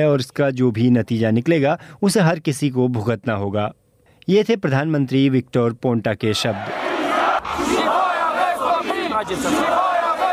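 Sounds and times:
speech: 0.0 - 6.8, 9.2 - 10.0
protesters chanting slogans outside Romanian government headquarters: 6.6 - 10.3.

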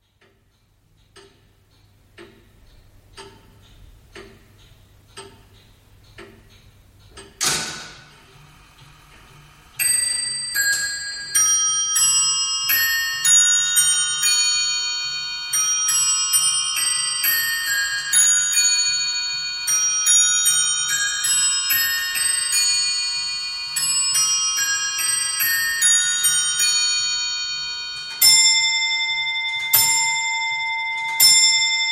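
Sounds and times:
Blickling Hall clocks ticking: 0.0 - 31.8
Blickling Hall clocks chiming: 8.0 - 31.8.

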